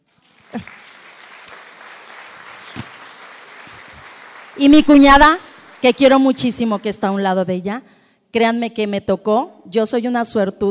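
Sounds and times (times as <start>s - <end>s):
applause: 0.0s - 7.2s
speech: 0.5s - 0.8s, 4.6s - 10.7s.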